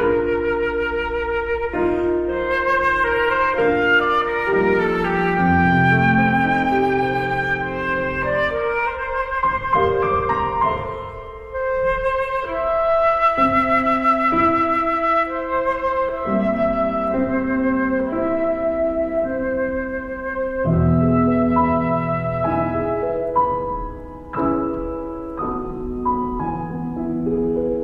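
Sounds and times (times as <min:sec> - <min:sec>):
flute playing a lullaby: 0:00.0 - 0:27.8
piano playing a lullaby: 0:00.0 - 0:27.8.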